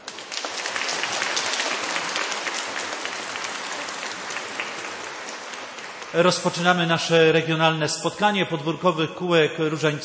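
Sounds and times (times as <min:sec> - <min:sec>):
audience applause: 0:00.0 - 0:07.3
speech: 0:06.1 - 0:10.0.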